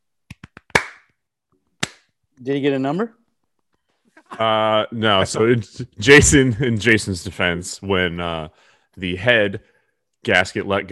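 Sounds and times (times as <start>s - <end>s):
golf clap: 0.3s - 1.1s
speech: 2.4s - 3.2s, 4.4s - 10.9s.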